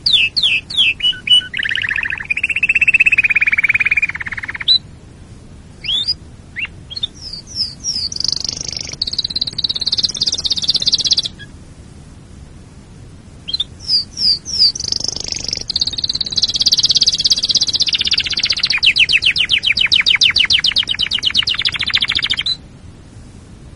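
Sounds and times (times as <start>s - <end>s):
canary singing: 0.0s - 4.9s, 5.8s - 11.6s, 13.4s - 22.7s.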